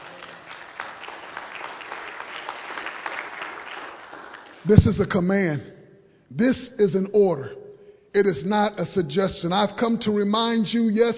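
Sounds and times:
audience clapping hands: 0:00.0 - 0:05.3
speech: 0:04.6 - 0:05.7, 0:06.3 - 0:11.1.

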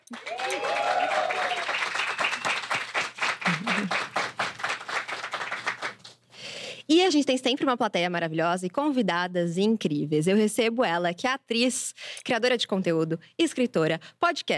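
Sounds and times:
live audience clapping: 0:00.0 - 0:06.2
whoops and high cheers: 0:00.1 - 0:02.6
speech: 0:06.9 - 0:14.5.

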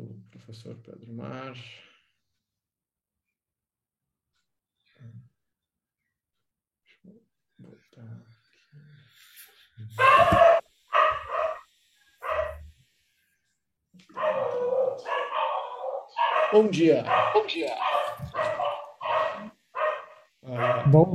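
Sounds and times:
speech: 0:00.5 - 0:01.9, 0:16.5 - 0:17.9, 0:20.5 - 0:21.1
small dog barking: 0:10.0 - 0:11.6, 0:12.2 - 0:12.6, 0:14.1 - 0:21.0.

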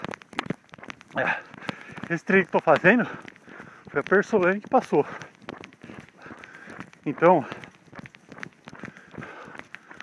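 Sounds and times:
running footsteps during a training run: 0:00.0 - 0:10.0
speech: 0:01.2 - 0:01.5, 0:02.1 - 0:03.3, 0:03.9 - 0:05.2, 0:07.1 - 0:07.6.

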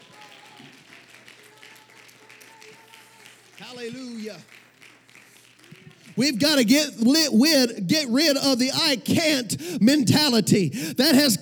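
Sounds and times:
audience clapping hands: 0:00.0 - 0:08.2
speech: 0:03.6 - 0:04.6, 0:06.2 - 0:11.4.

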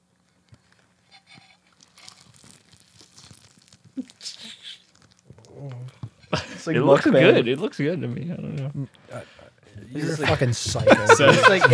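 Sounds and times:
wet chewing: 0:00.7 - 0:06.1
crunchy bites into fried chicken: 0:01.2 - 0:05.8
speech: 0:06.6 - 0:11.7
laughter: 0:10.2 - 0:11.7.

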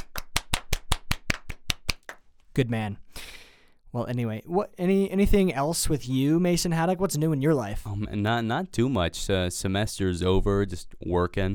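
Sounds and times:
small group clapping: 0:00.0 - 0:02.3
speech: 0:02.6 - 0:03.0, 0:03.9 - 0:11.5.

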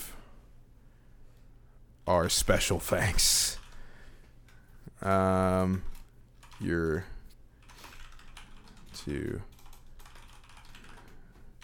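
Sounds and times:
speech: 0:02.1 - 0:03.6, 0:05.0 - 0:05.9, 0:06.6 - 0:07.1, 0:09.0 - 0:09.5
rapid computer keyboard typing: 0:03.6 - 0:03.8, 0:05.6 - 0:07.0, 0:07.6 - 0:11.6.

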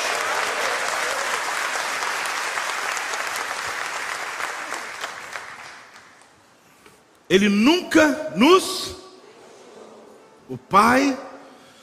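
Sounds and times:
audience applause: 0:00.0 - 0:06.4
speech: 0:07.3 - 0:09.0, 0:10.5 - 0:11.3.

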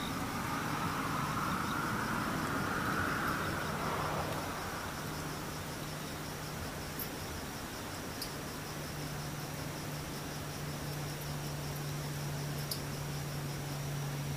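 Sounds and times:
vehicle passing: 0:00.0 - 0:05.7
cicadas and insects whining: 0:00.0 - 0:14.3
constant rushing hiss: 0:00.0 - 0:14.3
low engine-like hum: 0:00.0 - 0:14.3
faint ticks: 0:08.2 - 0:08.4, 0:12.5 - 0:12.9.

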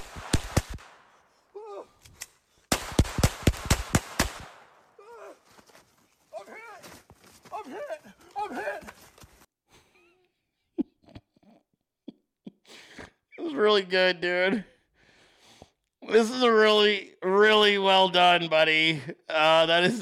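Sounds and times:
gunshots during a shooting drill: 0:00.0 - 0:01.2, 0:02.7 - 0:04.9
people shouting: 0:07.5 - 0:09.0
speech: 0:13.6 - 0:14.7, 0:16.1 - 0:20.0.

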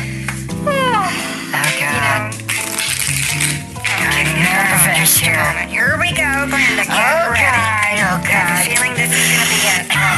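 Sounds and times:
steady tonal background: 0:00.0 - 0:10.1
stiff new playing cards being shuffled and broken in: 0:01.6 - 0:05.1.

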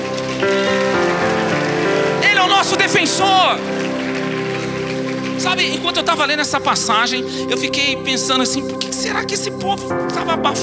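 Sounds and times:
audience applause: 0:00.0 - 0:07.3
speech: 0:02.6 - 0:04.2, 0:05.4 - 0:10.6.

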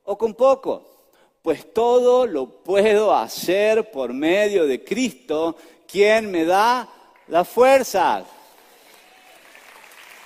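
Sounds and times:
speech: 0:00.1 - 0:08.4
audience applause: 0:08.5 - 0:10.2.

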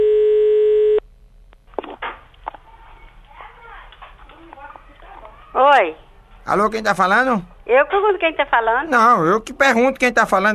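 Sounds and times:
telephone tone of an outgoing call: 0:00.0 - 0:01.0
speech: 0:05.8 - 0:10.5.

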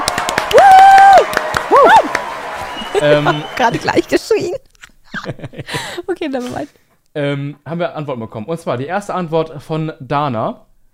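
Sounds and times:
played applause sound effect: 0:00.0 - 0:04.1
laughter: 0:02.8 - 0:04.2
speech: 0:03.0 - 0:10.7.

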